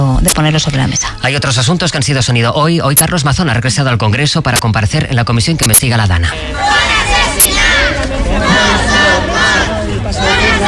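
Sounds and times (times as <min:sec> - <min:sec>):
speech: 0:00.2 - 0:06.8
protesters chanting outside parliament: 0:06.4 - 0:10.6.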